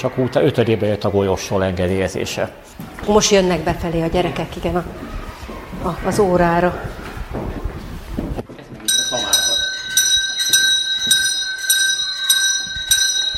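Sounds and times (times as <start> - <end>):
speech: 0.0 - 5.2, 5.8 - 7.6
electric school bell ringing for class: 8.9 - 13.3.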